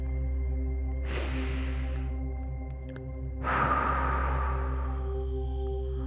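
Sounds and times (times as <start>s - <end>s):
steady low hum: 0.0s - 6.0s
deep breath in through the nose and out through the mouth: 1.0s - 2.4s, 3.3s - 6.0s.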